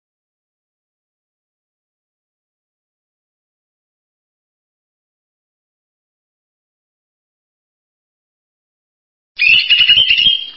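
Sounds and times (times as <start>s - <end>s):
bird song in buzzy trilled phrases: 9.4s - 10.5s.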